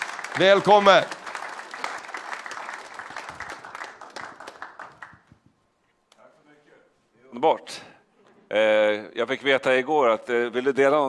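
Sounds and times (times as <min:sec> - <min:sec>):
audience applause: 0:00.0 - 0:05.3
speech: 0:00.4 - 0:01.2, 0:07.4 - 0:07.9, 0:08.5 - 0:11.0.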